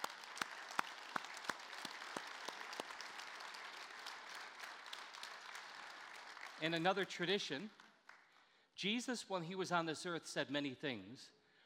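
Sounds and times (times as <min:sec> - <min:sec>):
audience applauding: 0:00.0 - 0:07.4
speech: 0:06.6 - 0:07.8, 0:08.8 - 0:11.4.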